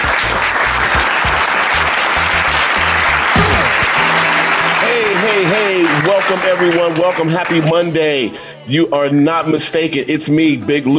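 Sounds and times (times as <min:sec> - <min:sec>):
audience applause greeting the host of a sports talk show: 0:00.0 - 0:08.0
speech: 0:06.3 - 0:10.9.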